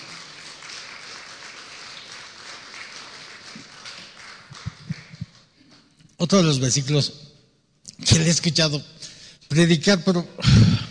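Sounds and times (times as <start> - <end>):
audience applause: 0.0 - 5.5
speech: 6.2 - 7.2, 8.2 - 10.8.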